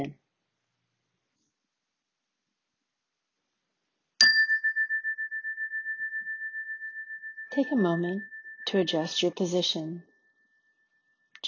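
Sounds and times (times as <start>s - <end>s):
speech: 0.0s - 0.2s, 7.6s - 10.1s
meditation chime: 4.2s - 11.3s.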